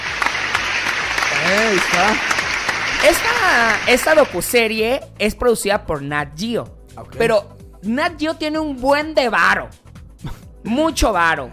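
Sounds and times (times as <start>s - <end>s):
applause: 0.0s - 4.6s
speech: 1.5s - 2.3s, 3.0s - 11.5s.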